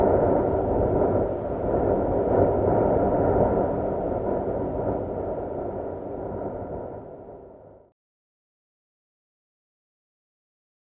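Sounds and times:
medium eerie wind gust: 0.0s - 7.8s.

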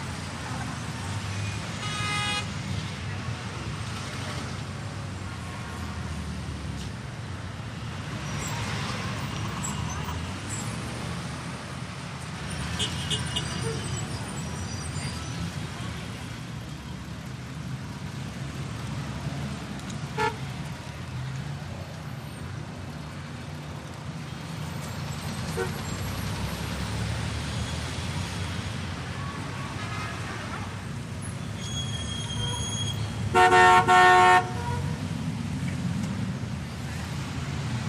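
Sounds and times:
general traffic in big city New York City: 0.0s - 37.8s.

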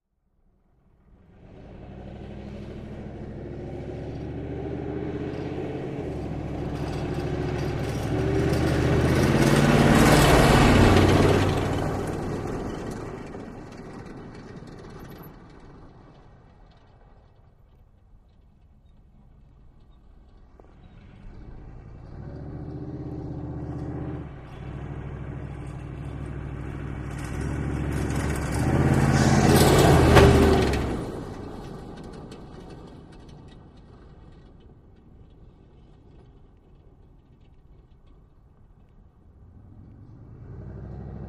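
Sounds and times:
Humvee driving various maneuvers: 0.6s - 41.2s.

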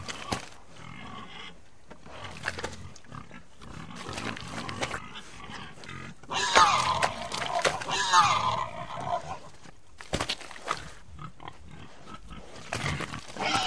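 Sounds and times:
pig grunting and squealing: 0.0s - 9.6s, 10.5s - 13.6s.

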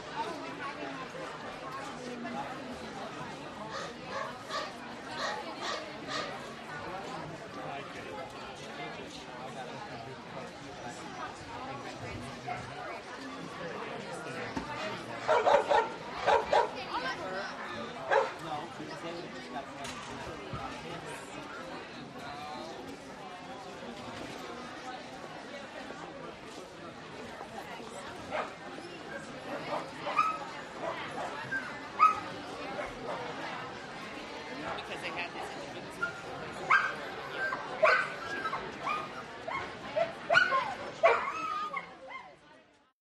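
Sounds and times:
dog show background crowd: 0.0s - 42.9s
dogs at a dog show: 15.3s - 16.8s, 18.1s - 18.4s.

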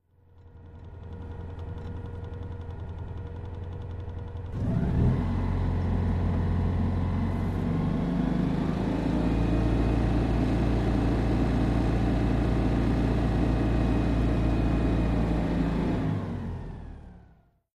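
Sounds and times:
Citroen Deux Chevaux engine idling with revs heard from interior: 0.2s - 17.5s.

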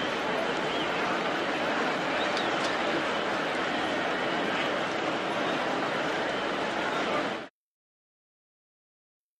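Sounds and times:
busy football crowd in a sports arena: 0.0s - 7.5s.

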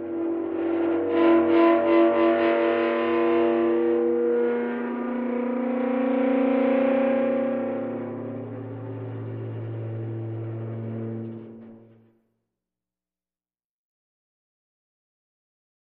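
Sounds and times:
eerie long metal scrapes with dry ice: 0.3s - 12.1s.

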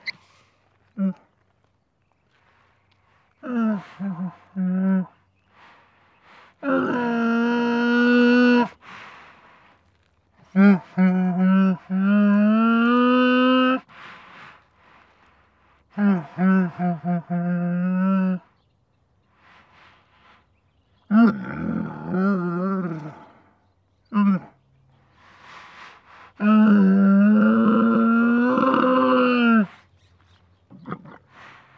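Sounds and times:
camel sad moans: 3.3s - 5.2s, 6.6s - 8.8s, 10.4s - 13.9s, 15.9s - 18.5s, 21.0s - 23.5s, 26.4s - 29.8s.

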